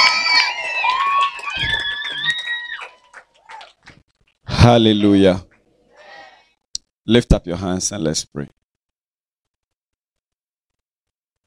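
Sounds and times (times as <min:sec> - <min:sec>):
audience shouting and cheering in high overlapping whoops: 0:00.0 - 0:03.8
audience clapping: 0:00.0 - 0:05.7
speech: 0:04.6 - 0:05.5, 0:07.1 - 0:08.6.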